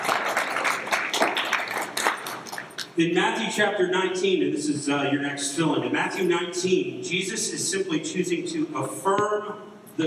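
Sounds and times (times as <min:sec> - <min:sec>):
audience applause: 0:00.0 - 0:02.8
speech: 0:03.0 - 0:10.0.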